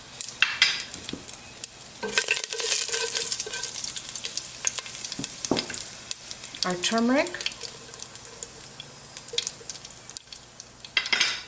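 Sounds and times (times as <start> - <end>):
mustard seeds crackling and popping in hot oil: 0.0 - 11.4
stirring scrape: 2.0 - 3.9, 7.4 - 9.7
speech: 6.6 - 7.5.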